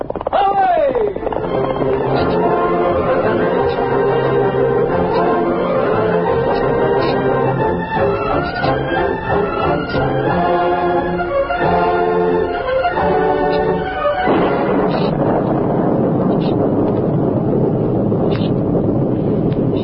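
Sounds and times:
storm wind roaring: 0.0s - 19.8s
sustained musical tones: 1.2s - 15.5s.

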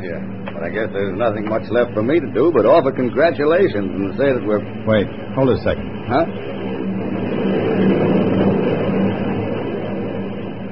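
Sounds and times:
speech: 0.0s - 6.5s
plane taking off: 0.0s - 10.6s.

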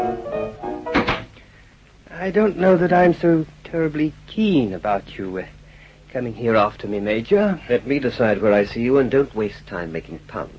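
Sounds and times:
door being shut: 0.9s - 1.4s
speech: 2.3s - 10.5s.

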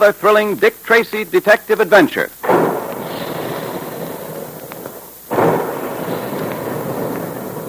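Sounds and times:
speech: 0.0s - 2.6s
boom of puffing guns in a cereal plant: 2.4s - 7.6s.

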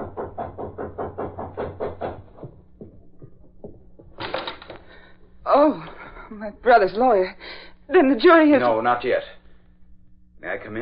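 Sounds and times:
knocks on an apartment door: 0.0s - 4.2s
rhythmic thumping pulses: 0.0s - 4.2s
speech: 5.6s - 9.4s, 10.4s - 10.7s.

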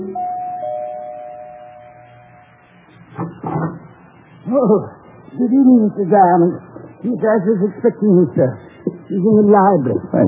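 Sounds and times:
apartment doorbell ringing: 0.0s - 2.6s
speech: 4.5s - 10.2s.

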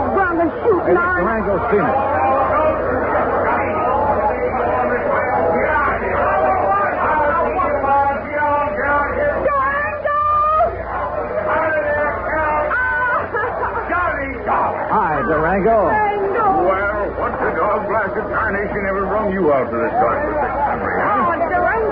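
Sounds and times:
crowd chatter: 0.0s - 21.9s
speech: 0.6s - 2.2s
laughs in a crowd: 13.0s - 14.2s.

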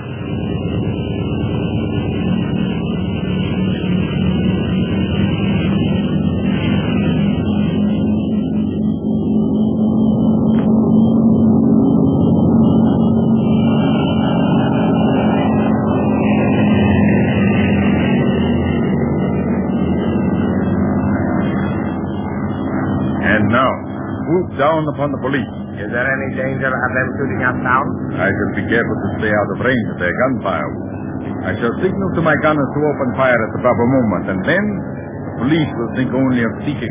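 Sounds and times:
aircraft engine taking off: 0.0s - 36.8s
speech: 24.8s - 36.8s.

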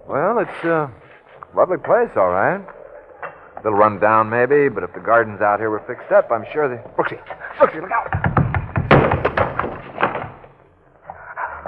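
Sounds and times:
speech: 0.1s - 2.8s, 3.6s - 8.2s
window shutter banging: 8.0s - 10.5s.

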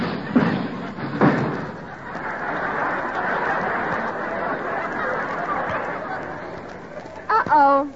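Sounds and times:
someone crashing through the roof: 0.0s - 2.3s
clattering rumbling debris: 0.0s - 2.8s
laughter: 0.3s - 7.3s.

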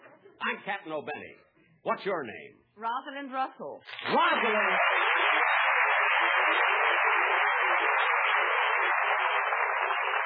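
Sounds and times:
speech: 0.4s - 5.1s
applause: 3.9s - 10.2s.

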